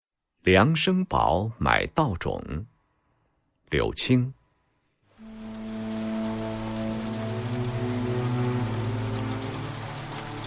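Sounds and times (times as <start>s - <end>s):
speech: 0.4s - 2.7s, 3.7s - 4.4s
spring rain pattering down: 5.1s - 10.4s.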